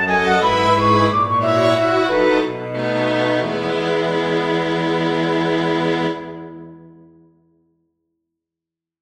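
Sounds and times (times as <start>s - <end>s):
flute and strings playing a recitative: 0.0s - 6.8s.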